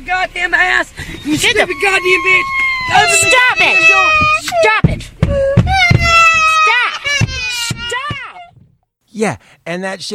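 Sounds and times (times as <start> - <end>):
speech: 0.1 - 5.4, 9.2 - 10.1
child wailing: 1.2 - 8.5.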